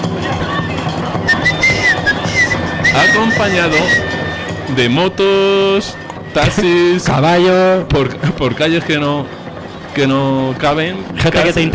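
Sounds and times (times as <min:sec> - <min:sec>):
loud dense crowd babble in a busy city square: 0:00.0 - 0:11.7
shrill wavering whistle: 0:01.2 - 0:07.1
speech: 0:03.0 - 0:04.1, 0:04.7 - 0:09.4, 0:10.0 - 0:11.7.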